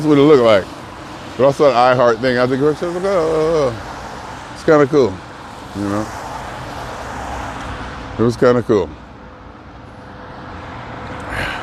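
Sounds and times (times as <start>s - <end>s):
speech: 0.0s - 0.8s, 1.4s - 3.9s, 4.7s - 6.2s, 8.2s - 9.0s
bus pulling in through city traffic: 9.2s - 11.6s.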